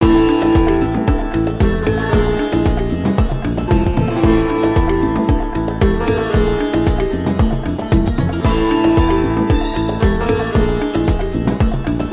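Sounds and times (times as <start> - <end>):
free spin melody: 0.0 - 12.1.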